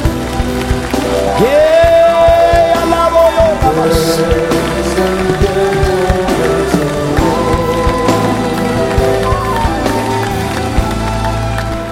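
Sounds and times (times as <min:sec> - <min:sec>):
church audience applauding: 0:00.0 - 0:11.9.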